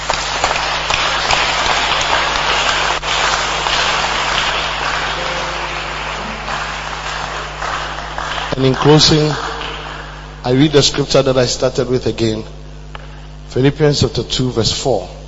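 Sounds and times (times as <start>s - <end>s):
audience clapping: 0.0s - 10.4s
speech: 8.6s - 9.5s, 10.4s - 12.6s, 13.5s - 15.2s.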